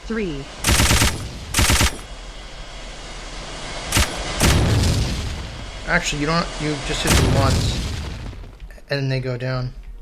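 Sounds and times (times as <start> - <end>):
speech: 0.1 - 1.2, 5.9 - 7.8, 8.9 - 9.8
video game machine gun firing: 0.6 - 2.1, 3.9 - 4.8.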